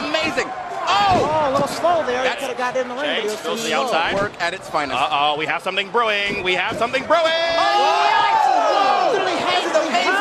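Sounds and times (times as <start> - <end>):
loud dense crowd roaring and cheering: 0.0 - 3.6, 7.1 - 10.1
speech: 0.2 - 8.3.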